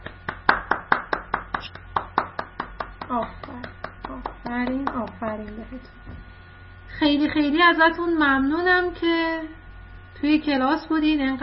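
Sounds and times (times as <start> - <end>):
children in a class clapping: 0.0 - 5.6
speech: 3.1 - 6.3, 7.0 - 9.6, 10.2 - 11.4.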